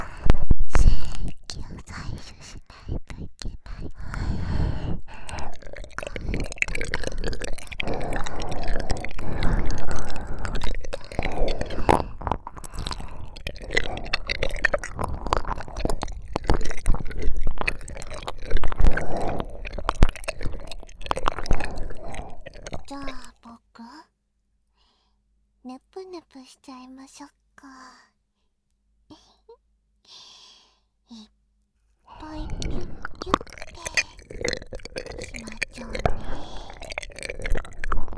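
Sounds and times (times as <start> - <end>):
ear licking sounds: 0.0 - 23.4, 32.1 - 38.1.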